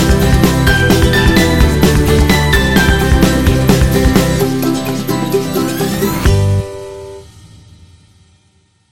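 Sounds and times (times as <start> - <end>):
happy indie folk music: 0.0 - 6.7.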